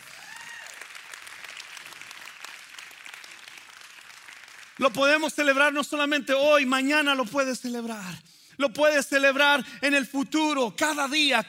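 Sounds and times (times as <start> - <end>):
audience applauding: 0.0 - 5.3
speech: 4.8 - 11.4.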